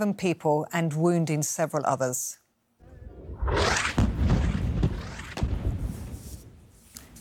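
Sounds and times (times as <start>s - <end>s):
speech: 0.0s - 2.4s, 3.4s - 4.0s
explosion from an airstrike on a desalination plant in Sheikh Radwan, Gaza: 2.8s - 6.2s
sharp thuds: 3.3s - 6.6s.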